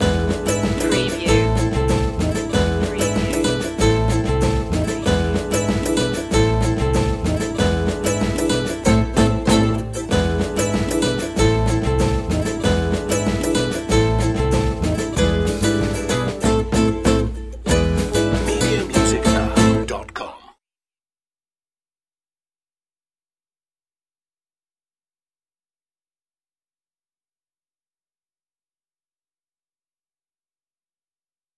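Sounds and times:
Latin carnavalito music: 0:00.0 - 0:20.2.

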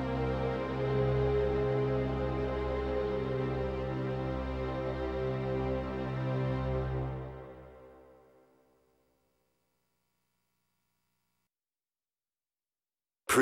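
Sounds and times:
sad strings: 0:00.0 - 0:08.0.

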